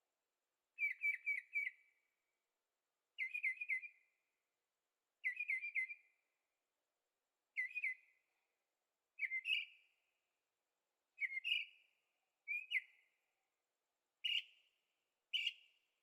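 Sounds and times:
bird whistled song: 0:00.8 - 0:02.0, 0:03.2 - 0:04.1, 0:05.2 - 0:06.2, 0:07.6 - 0:08.2, 0:09.2 - 0:09.9, 0:11.2 - 0:11.9, 0:12.5 - 0:13.1, 0:14.2 - 0:14.6, 0:15.3 - 0:15.8.

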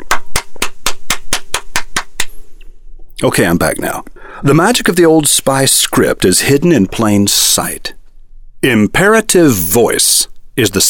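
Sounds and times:
hand clapping: 0:00.0 - 0:02.4
speech: 0:03.2 - 0:08.0, 0:08.6 - 0:10.8.

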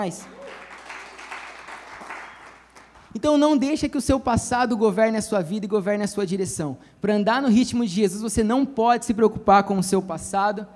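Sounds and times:
speech: 0:00.0 - 0:00.6, 0:03.1 - 0:10.7
audience applause: 0:00.2 - 0:03.1.

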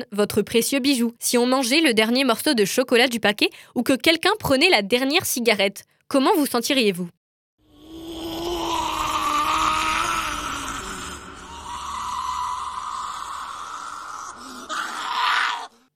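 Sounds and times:
speech: 0:00.0 - 0:07.2
creature's desperate anguished wailing cry: 0:07.7 - 0:15.9.

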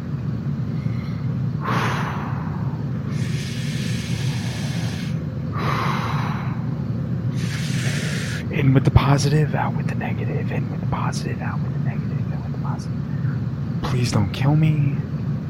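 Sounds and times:
low hum: 0:00.0 - 0:15.4
person breathing deeply to calm down: 0:00.7 - 0:08.5
speech: 0:08.7 - 0:12.0, 0:12.7 - 0:13.2, 0:13.9 - 0:15.0.

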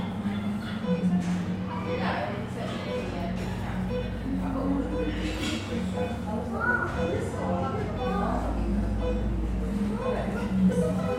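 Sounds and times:
chatter in an English seaside town coffee shop: 0:00.0 - 0:11.1
cups clinking: 0:05.1 - 0:06.0.

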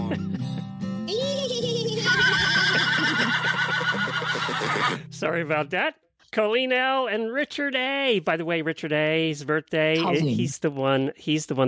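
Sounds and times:
laughter: 0:00.0 - 0:00.7, 0:01.9 - 0:05.0
horse whinny sound effect: 0:02.0 - 0:05.1
speech: 0:05.2 - 0:11.6.

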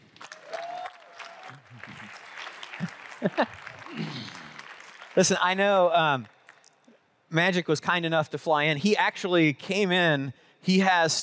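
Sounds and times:
crowd applauding: 0:00.0 - 0:06.8
scattered cheers and voices: 0:00.3 - 0:04.8
laughter: 0:02.7 - 0:04.6
speech: 0:03.2 - 0:04.2, 0:05.2 - 0:06.4, 0:07.3 - 0:11.2.

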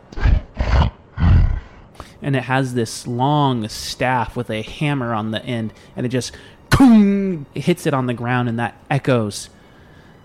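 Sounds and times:
monstrous creature snorting: 0:00.1 - 0:01.9
speech: 0:02.2 - 0:09.6.

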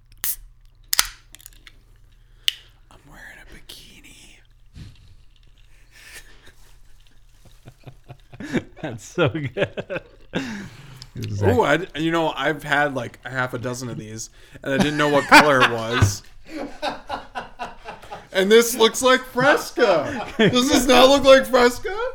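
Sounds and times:
can of Mountain Dew opening: 0:00.0 - 0:01.8, 0:02.4 - 0:02.7
laughter: 0:06.1 - 0:22.1
speech: 0:08.8 - 0:16.3, 0:18.4 - 0:22.0.

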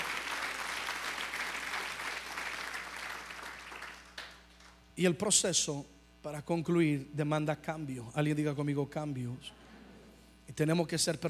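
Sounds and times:
crowd applauding: 0:00.0 - 0:04.8
speech: 0:05.0 - 0:09.6, 0:10.5 - 0:11.2.

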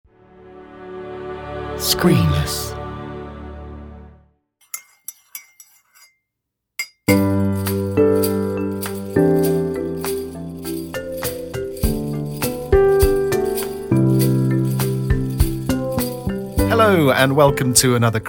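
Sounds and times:
full, tuneful music track: 0:00.1 - 0:04.3, 0:07.1 - 0:18.2
speech: 0:01.8 - 0:02.8, 0:17.0 - 0:18.2
sleigh bells jingling: 0:06.8 - 0:17.9.

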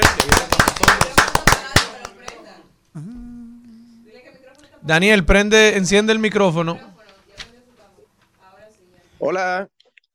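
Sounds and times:
applause: 0:00.0 - 0:02.4
speech: 0:04.8 - 0:06.9, 0:09.3 - 0:09.7.

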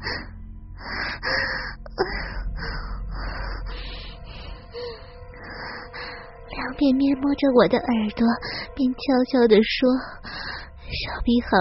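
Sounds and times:
heavy rapid wheezy breathing: 0:00.0 - 0:06.5, 0:10.0 - 0:11.1
speech: 0:06.8 - 0:11.5.

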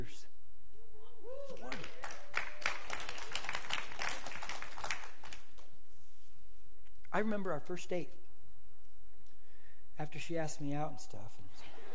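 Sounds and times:
audience applause: 0:01.6 - 0:05.6
speech: 0:07.2 - 0:08.2, 0:10.0 - 0:11.8.

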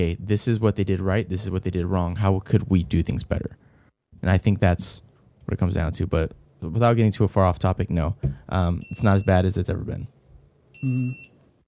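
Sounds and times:
speech: 0:00.0 - 0:10.2, 0:10.8 - 0:11.3
beeps: 0:10.8 - 0:11.3.

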